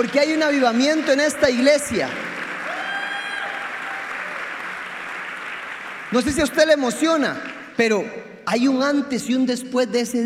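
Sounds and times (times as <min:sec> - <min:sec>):
speech: 0:00.0 - 0:02.3, 0:06.1 - 0:10.2
audience applause: 0:00.0 - 0:06.8.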